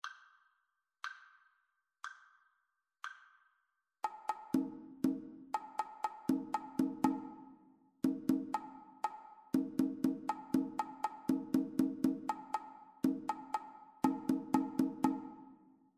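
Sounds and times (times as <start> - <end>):
two-part rhythm: 4.0 - 15.6.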